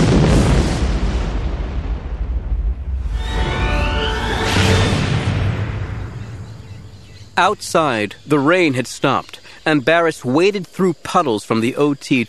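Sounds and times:
explosion against a force dome: 0.0 - 7.7
speech: 7.4 - 12.2.

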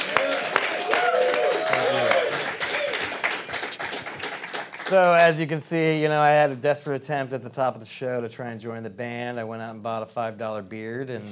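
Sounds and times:
cheers and whooping voices: 0.0 - 3.3
crowd applause: 0.0 - 5.4
speech: 4.9 - 11.2.

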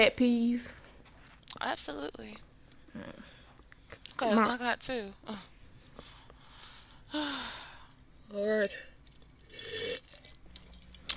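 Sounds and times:
speech: 0.0 - 0.8, 1.5 - 3.3, 4.2 - 6.1, 7.1 - 7.6, 8.3 - 8.9
loud airy slurp: 9.4 - 10.3.

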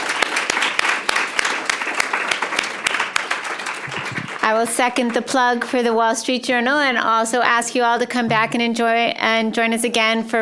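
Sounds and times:
audience applause for panel: 0.0 - 5.3
speech: 4.4 - 10.4.

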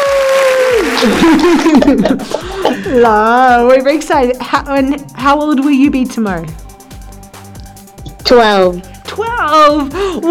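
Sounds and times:
applause: 0.0 - 1.5
laughter: 0.8 - 3.2
speech: 1.0 - 6.6, 8.3 - 10.3.

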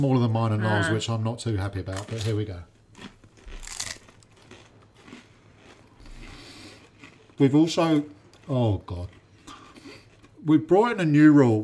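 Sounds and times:
speech: 0.0 - 3.1, 7.4 - 9.2, 10.4 - 11.6
chewing and crunching food: 1.9 - 11.3.

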